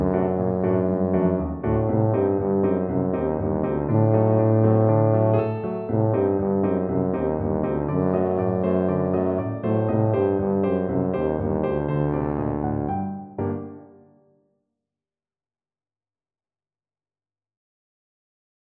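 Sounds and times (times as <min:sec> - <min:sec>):
tuba melody: 0:00.0 - 0:14.2.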